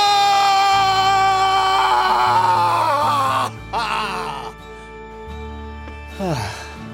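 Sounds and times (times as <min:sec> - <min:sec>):
primal scream: 0:00.0 - 0:04.5.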